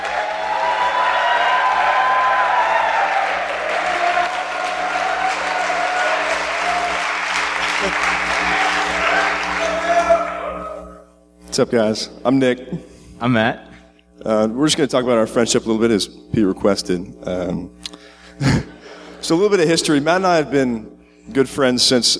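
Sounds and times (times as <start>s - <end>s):
audience applause welcoming two friends to the stage: 0.0s - 10.4s
speech: 11.6s - 18.6s, 19.2s - 22.1s.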